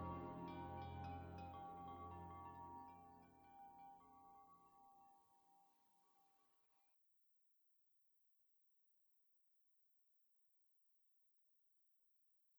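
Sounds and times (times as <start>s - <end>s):
emotional piano music: 0.0s - 2.8s.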